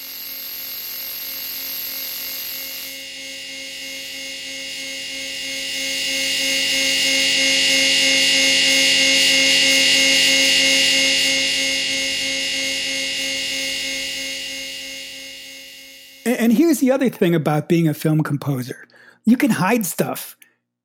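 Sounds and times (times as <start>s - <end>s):
buzz of an electric chair: 0.0s - 16.3s
speech: 16.8s - 20.4s.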